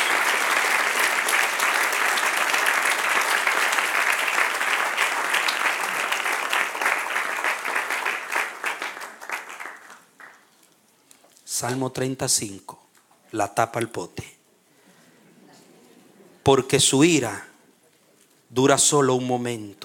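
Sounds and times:
audience applause: 0.0 - 10.5
speech: 11.6 - 14.4, 16.5 - 17.5, 18.6 - 19.8.

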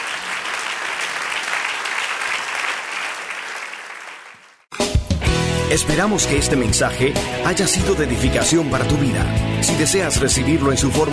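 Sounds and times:
audience applause: 0.0 - 4.7
speech: 5.7 - 11.1.

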